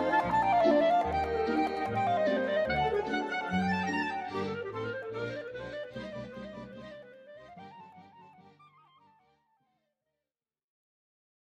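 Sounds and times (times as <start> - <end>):
classical music with clarinet: 0.0 - 8.9.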